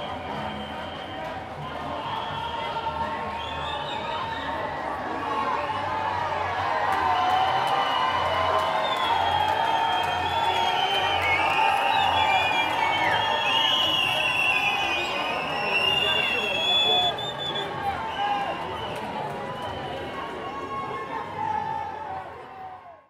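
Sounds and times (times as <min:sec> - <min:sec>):
protest crowd in France: 0:00.0 - 0:23.0.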